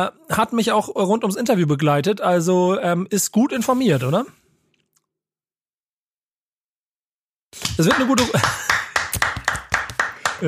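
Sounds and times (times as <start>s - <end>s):
speech: 0.0s - 4.4s, 7.8s - 8.8s
applause: 7.6s - 10.4s
laughter: 7.8s - 9.5s, 10.1s - 10.4s.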